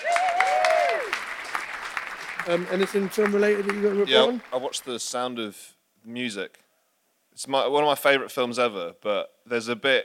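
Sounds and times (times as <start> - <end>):
whoop or whistle: 0.0 - 1.1
crowd applauding: 0.0 - 5.3
speech: 2.4 - 6.6, 7.4 - 10.0.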